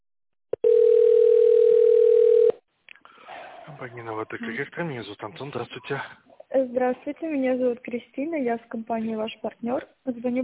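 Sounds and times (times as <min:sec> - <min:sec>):
telephone tone after automated greeting: 0:00.6 - 0:02.6
speech: 0:03.8 - 0:10.4.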